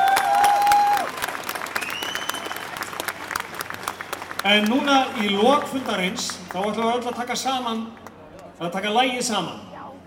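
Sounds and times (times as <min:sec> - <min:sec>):
audience applause at a union meeting: 0:00.0 - 0:07.3
speech: 0:04.4 - 0:08.0, 0:08.6 - 0:09.6.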